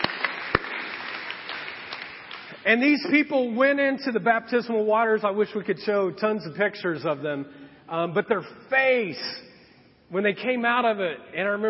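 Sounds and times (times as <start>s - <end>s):
audience applause: 0.0s - 2.6s
speech: 2.6s - 9.5s, 10.1s - 11.6s.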